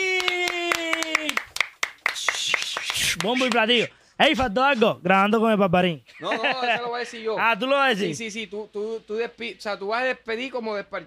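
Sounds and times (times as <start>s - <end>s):
applause: 0.0s - 3.8s
speech: 3.2s - 11.0s
laughter: 6.1s - 7.3s.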